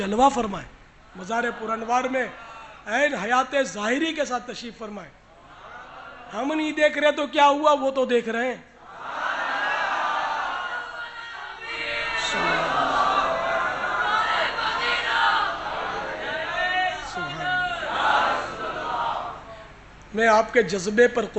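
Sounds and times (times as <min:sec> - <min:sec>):
speech: 0:00.0 - 0:05.2, 0:06.3 - 0:08.7, 0:20.1 - 0:21.3
large crowd chanting religious slogans: 0:08.8 - 0:19.5.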